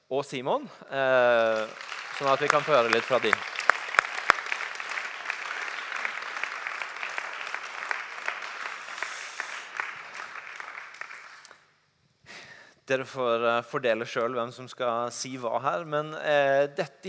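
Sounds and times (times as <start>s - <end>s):
speech: 0.1s - 3.5s, 12.9s - 17.0s
audience clapping: 1.2s - 11.6s.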